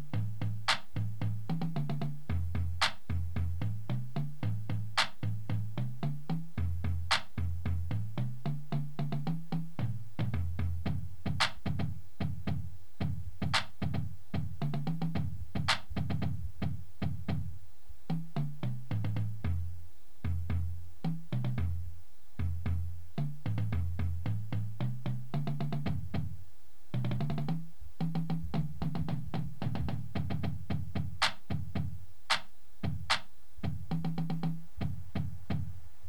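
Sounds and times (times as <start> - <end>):
bass: 0.0 - 36.0.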